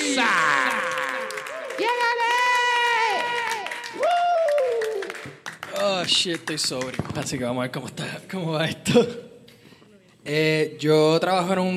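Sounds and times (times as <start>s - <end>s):
audience applause and cheering: 0.0s - 7.0s
speech: 0.2s - 0.4s, 6.0s - 9.2s, 10.3s - 11.7s.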